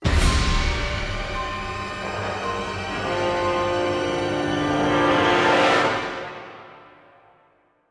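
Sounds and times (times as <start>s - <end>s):
music sting: 0.0s - 5.2s.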